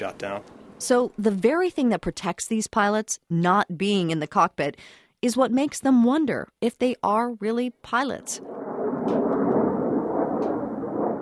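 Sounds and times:
speech: 0.0s - 8.7s
F-22 fighter jet flying overhead: 8.4s - 11.1s.

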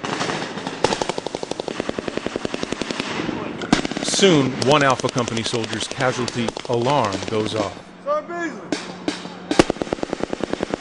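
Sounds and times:
gunfire: 0.0s - 7.8s, 8.7s - 10.7s
attack helicopters swooping overhead: 0.0s - 10.7s
Abrams tanks and Bradley fighting vehicles rumbling: 2.9s - 10.7s
speech: 4.2s - 8.7s.

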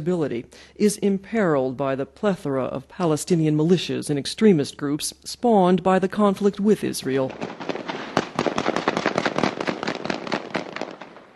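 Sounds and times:
speech: 0.0s - 8.1s
masked gunmen firing into the air in a rapid volley: 7.3s - 11.3s.

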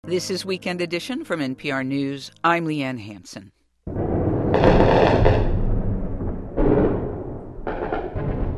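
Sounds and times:
speech: 0.0s - 3.6s
low roaring rumble of night bombardment of central Tripoli: 3.9s - 7.7s
cruise missile blasts: 3.9s - 8.5s.

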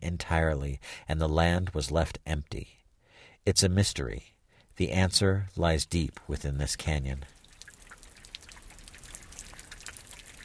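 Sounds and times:
speech: 0.2s - 2.8s, 3.4s - 7.4s
water dripping from springs seeping out of bare rock in a canyon amphitheater: 7.2s - 10.4s.

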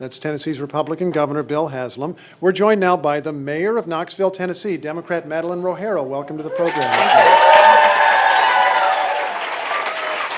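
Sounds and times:
speech: 0.0s - 7.5s
crowd applause: 6.5s - 10.3s.

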